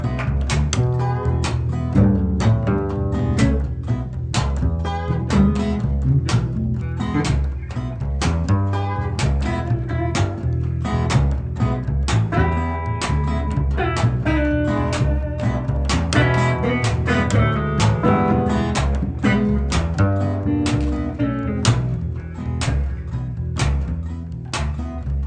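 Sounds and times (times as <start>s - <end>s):
blues music: 0.0s - 25.2s.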